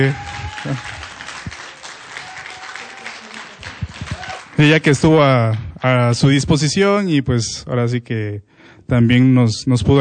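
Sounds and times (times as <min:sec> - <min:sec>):
speech: 0:00.0 - 0:01.0, 0:04.6 - 0:09.9
audience applause for a fellow performer at the end of a concert: 0:00.0 - 0:06.0.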